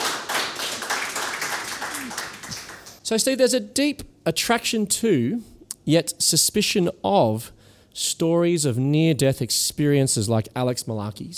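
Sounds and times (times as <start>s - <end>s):
applause: 0.0s - 3.0s
speech: 3.1s - 11.3s.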